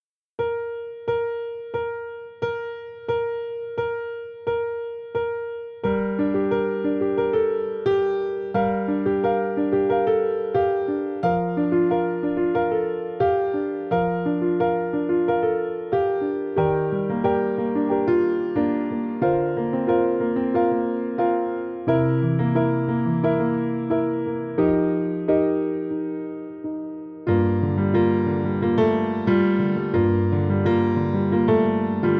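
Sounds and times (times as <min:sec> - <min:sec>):
piano: 0:00.4 - 0:32.1.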